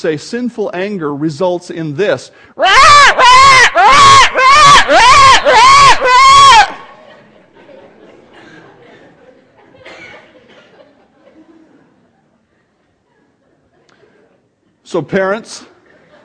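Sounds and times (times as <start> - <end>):
speech: 0.0 - 5.6, 14.9 - 15.7
crowd clamoring and shouting in unison: 2.6 - 7.0
laughter: 2.6 - 14.5, 15.7 - 16.2.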